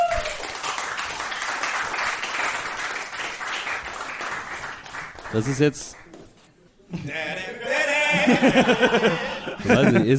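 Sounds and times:
audience applause: 0.0s - 6.2s
speech: 5.3s - 6.0s, 6.9s - 10.1s
laughter: 6.9s - 10.1s.

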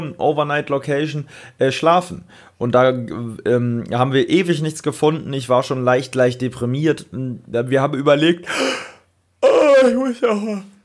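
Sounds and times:
speech: 0.0s - 8.9s, 9.8s - 10.7s
loud distorted voiced yawn: 8.5s - 10.8s.

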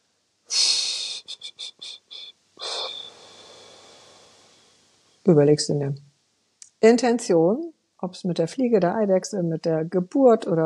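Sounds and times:
deep breath in and out: 2.6s - 4.8s
speech: 5.3s - 6.1s, 6.8s - 10.6s.

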